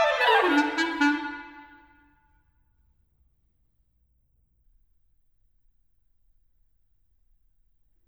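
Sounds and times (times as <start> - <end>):
two clarinets playing a lively sonata: 0.0 - 1.8.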